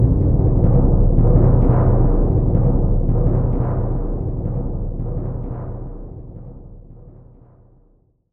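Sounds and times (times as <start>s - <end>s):
bass drum roll: 0.0s - 7.4s.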